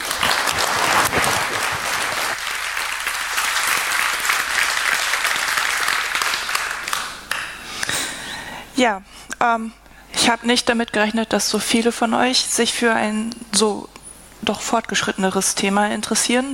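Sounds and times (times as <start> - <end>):
audience applause: 0.0 - 7.6
speech: 8.8 - 16.5.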